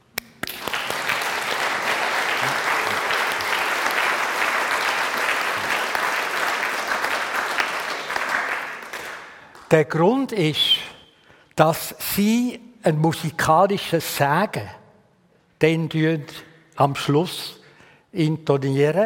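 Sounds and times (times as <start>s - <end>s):
audience applause: 0.4s - 9.6s
speech: 9.7s - 10.9s, 11.6s - 14.8s, 15.6s - 19.0s.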